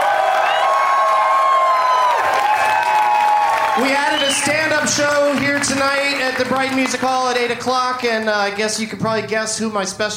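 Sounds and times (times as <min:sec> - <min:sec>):
large live audience whooping and shouting: 0:00.0 - 0:06.0
large live audience clapping: 0:00.0 - 0:08.9
speech: 0:03.8 - 0:10.1.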